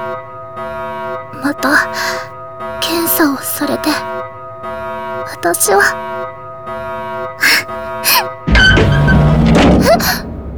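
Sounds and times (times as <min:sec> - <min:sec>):
speech: 0:01.4 - 0:02.3, 0:02.9 - 0:04.2, 0:05.4 - 0:06.1
door sliding open with a heavy mechanical thunk: 0:08.5 - 0:10.5.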